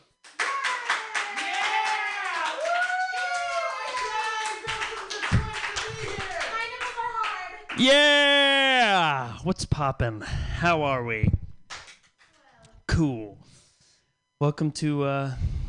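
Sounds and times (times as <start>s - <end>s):
audience clapping: 0.2s - 8.0s, 11.7s - 12.4s
voices whooping and cheering: 0.4s - 9.2s
speech: 7.8s - 11.4s, 13.0s - 13.4s, 14.4s - 15.6s.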